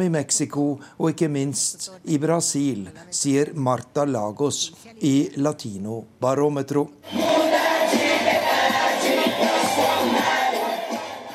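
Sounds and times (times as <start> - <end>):
speech: 0.0 - 7.5
supporters of Jair Bolsonaro cheering and shouting after election victory in Brazil: 7.1 - 11.3.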